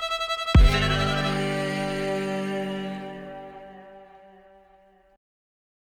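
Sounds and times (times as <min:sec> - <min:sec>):
fiddle string crossing tremolo A to E: 0:00.5 - 0:04.4.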